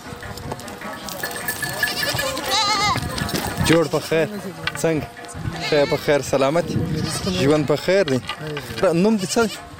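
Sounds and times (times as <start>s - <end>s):
herded flock of goats and sheep bleating: 1.8s - 3.6s, 5.5s - 6.2s, 6.9s - 7.8s
speech: 3.7s - 9.7s.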